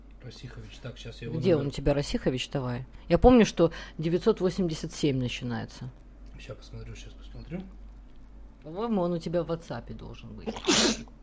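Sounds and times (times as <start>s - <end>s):
speech: 0.3s - 7.8s, 8.6s - 11.2s
sneeze: 10.5s - 11.1s.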